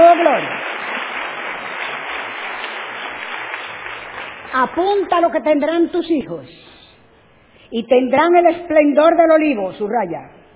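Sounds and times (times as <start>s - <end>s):
audience applause: 0.0s - 4.8s
speech: 4.5s - 6.6s, 7.7s - 10.4s.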